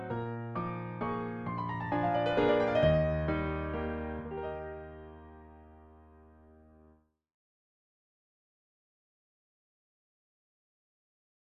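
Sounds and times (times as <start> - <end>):
piano: 0.0 - 7.1.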